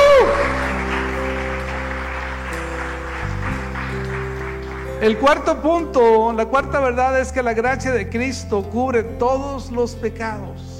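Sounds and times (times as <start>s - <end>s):
audience applause: 0.0s - 5.6s
speech: 5.0s - 10.7s.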